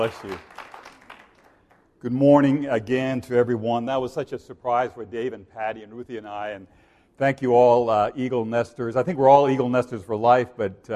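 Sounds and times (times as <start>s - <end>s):
speech: 0.0s - 0.7s, 2.0s - 10.9s
few people clapping: 0.0s - 1.9s.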